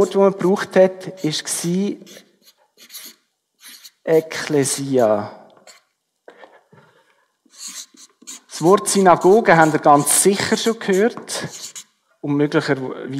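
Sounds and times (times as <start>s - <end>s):
speech: 0.0s - 2.2s, 4.0s - 5.4s, 8.6s - 13.1s
writing on a board: 2.0s - 4.0s, 5.6s - 5.9s, 7.5s - 11.9s.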